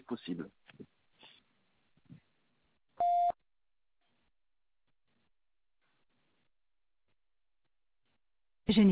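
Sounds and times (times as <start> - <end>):
voicemail electronic beep: 3.0 - 3.4.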